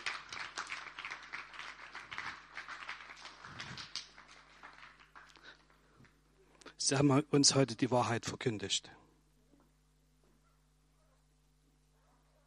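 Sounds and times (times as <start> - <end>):
audience clapping for performers: 0.0 - 6.2
speech: 6.9 - 9.0.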